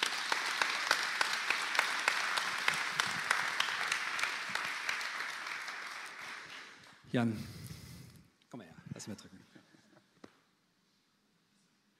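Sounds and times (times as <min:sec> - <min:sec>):
audience applause: 0:00.0 - 0:07.0
speech: 0:07.1 - 0:07.6, 0:09.0 - 0:09.4.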